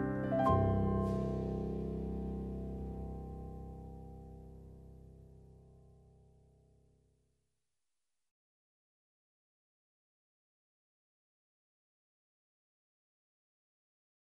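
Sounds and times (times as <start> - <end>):
piano piece: 0.0 - 6.4.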